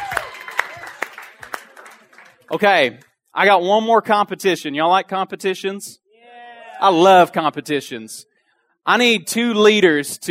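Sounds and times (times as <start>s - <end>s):
audience hand clapping: 0.0s - 3.1s
speech: 2.5s - 6.0s, 6.8s - 10.2s.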